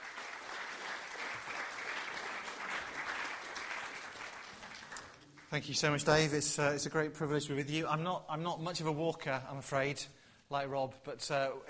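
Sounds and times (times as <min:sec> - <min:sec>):
audience applause welcoming a speaker: 0:00.0 - 0:05.5
speech: 0:05.5 - 0:11.6.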